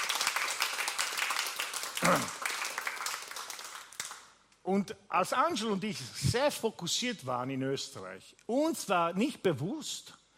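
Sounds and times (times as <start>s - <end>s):
audience applause: 0.0s - 4.2s
speech: 2.0s - 2.4s, 4.7s - 10.2s.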